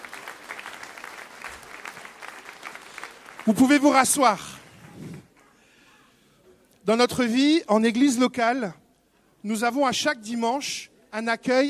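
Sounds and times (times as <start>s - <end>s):
audience applauding: 0.0s - 5.4s
speech: 3.4s - 4.6s, 6.9s - 8.8s, 9.4s - 11.6s.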